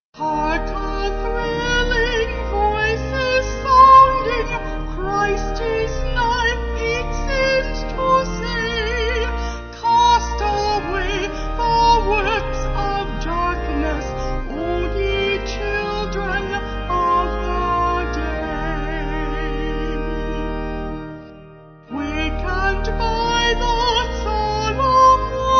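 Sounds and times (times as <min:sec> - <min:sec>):
vocals: 0:00.2 - 0:20.6, 0:21.9 - 0:25.5
organ: 0:00.2 - 0:25.5.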